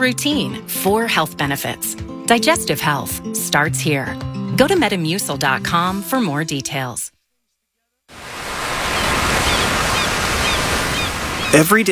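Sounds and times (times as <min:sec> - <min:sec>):
speech: 0:00.0 - 0:07.2, 0:11.5 - 0:11.9
ocean surf along the California coastline: 0:08.1 - 0:11.7.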